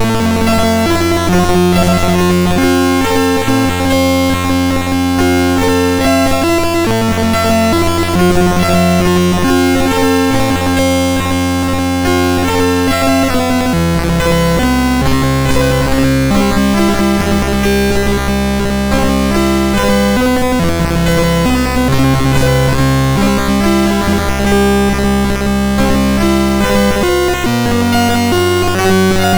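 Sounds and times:
generated chiptune music on SID MOS6581R2 chip: 0.0 - 29.3.

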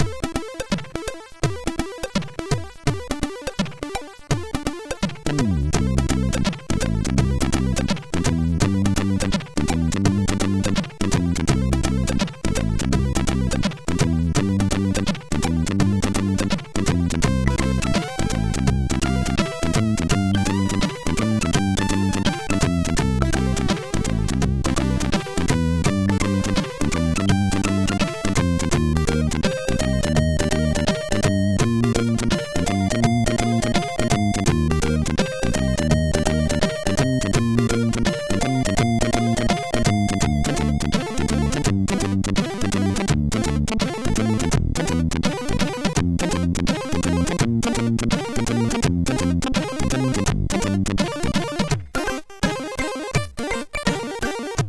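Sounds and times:
jazzy music on MOS6581R4 sound chip: 0.0 - 54.6.

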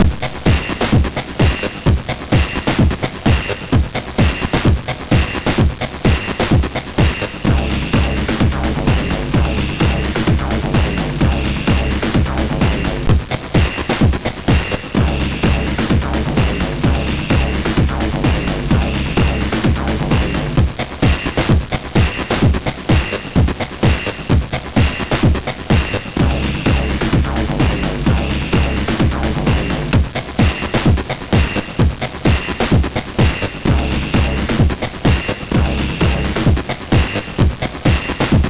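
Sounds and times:
SID chip tune on MOS6581R2: 0.0 - 38.4.

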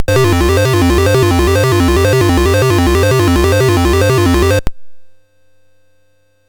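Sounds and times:
SID MOS6581R4 chiptune music: 0.0 - 4.7.

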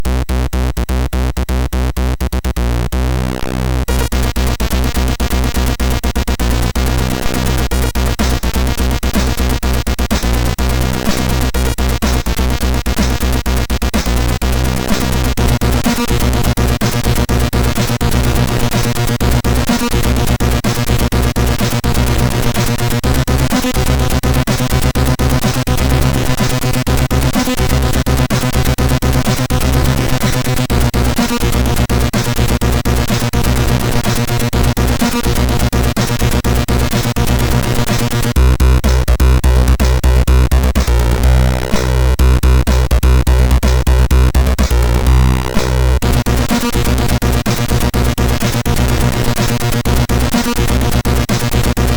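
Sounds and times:
techno on MOS6581R3 sound chip: 0.0 - 51.9.

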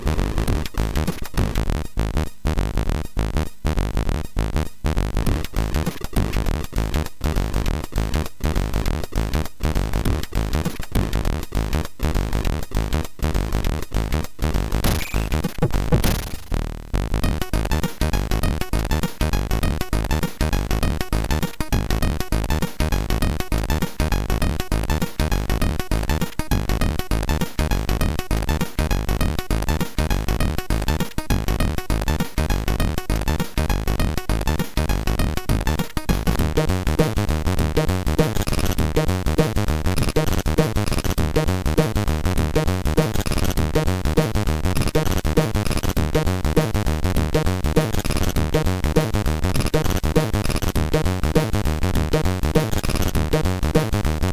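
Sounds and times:
kick drum from MOS6581R4 sound chip: 0.2 - 54.3.

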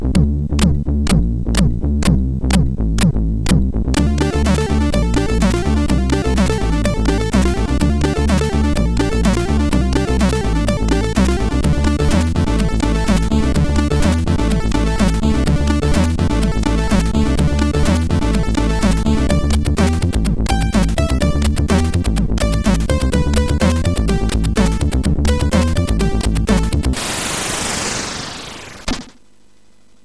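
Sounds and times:
acid-like MOS6581R4 synth: 0.2 - 29.1.

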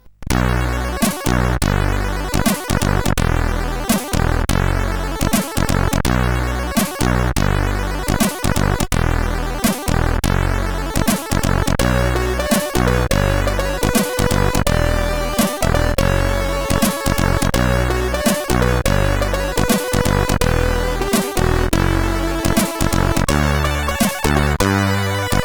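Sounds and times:
SID CSG8580R5 chip music: 0.3 - 25.4.

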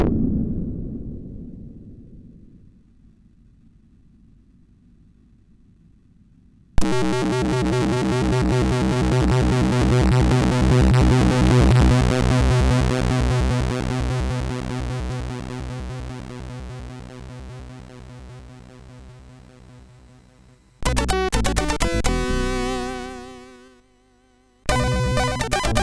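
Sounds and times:
SID MOS6581R4 chiptune music: 6.8 - 19.8, 20.8 - 23.6, 24.7 - 25.8.

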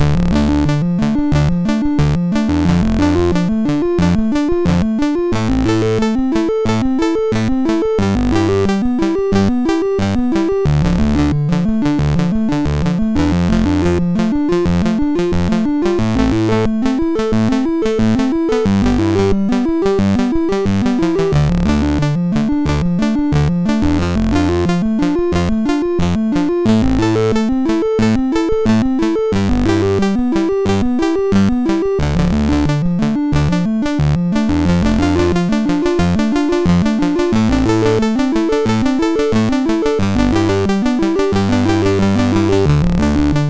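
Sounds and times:
SID MOS6581R2 chiptune game music: 0.0 - 43.4.

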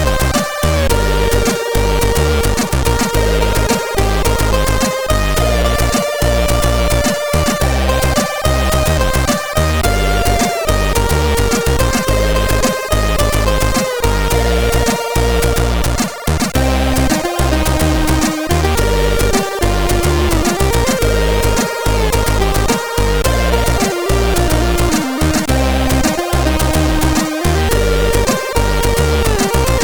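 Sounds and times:
SID chip music on CSG8580R5: 0.0 - 29.8.

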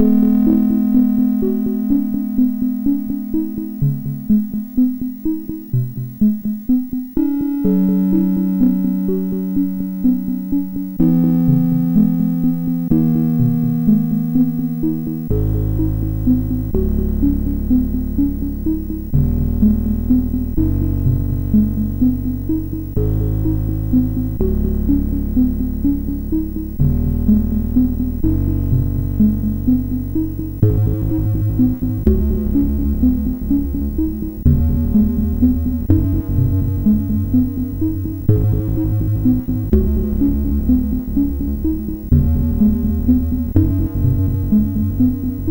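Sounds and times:
MOS6581 SID chip music: 0.0 - 45.4.

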